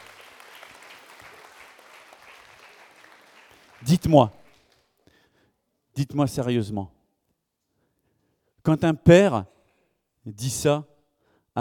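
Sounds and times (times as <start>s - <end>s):
audience applause: 0.0s - 4.9s
speech: 3.8s - 4.4s, 6.0s - 7.0s, 8.7s - 9.6s, 10.2s - 10.9s.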